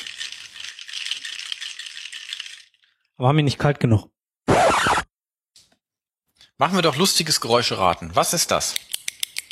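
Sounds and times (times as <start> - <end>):
ice rattling in a cocktail shaker being shaken: 0.0 - 2.9
speech: 3.2 - 4.1, 6.6 - 8.9.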